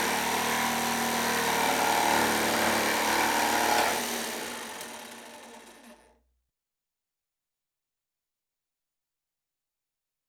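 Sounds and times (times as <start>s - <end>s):
electric jigsaw cutting a plywood sheet in construction: 0.0s - 6.1s.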